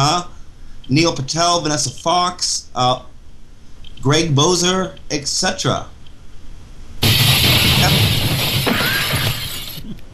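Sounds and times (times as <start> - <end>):
speech: 0.9 - 3.1, 4.0 - 5.9
glass window breaking: 7.0 - 9.9.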